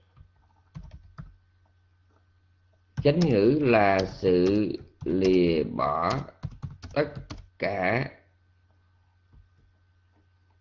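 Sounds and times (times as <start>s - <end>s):
faint typing on a computer keyboard: 0.1s - 1.4s, 3.0s - 7.5s
speech: 3.0s - 6.4s, 7.0s - 8.2s.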